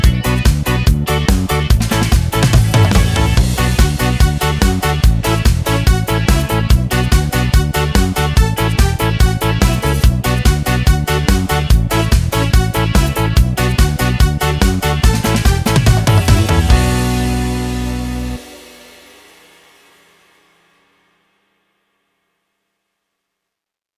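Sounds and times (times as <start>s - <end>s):
Yamaha keyboard accompaniment style: 0.0s - 19.0s.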